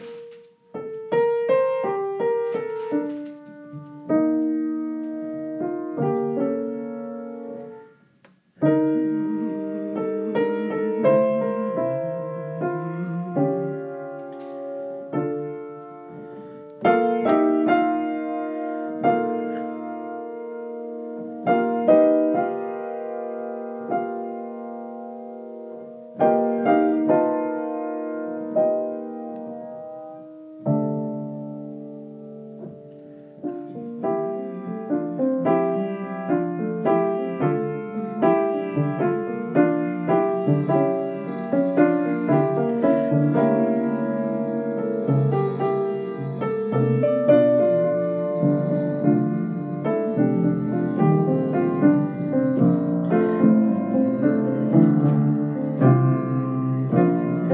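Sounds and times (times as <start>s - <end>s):
improvised music: 0.0s - 57.5s.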